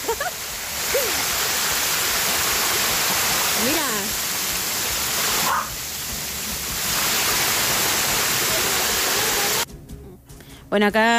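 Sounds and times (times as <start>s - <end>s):
flash flood rushing down a ravine at Freirina, Atacama: 0.0s - 9.7s
speech: 10.7s - 11.1s.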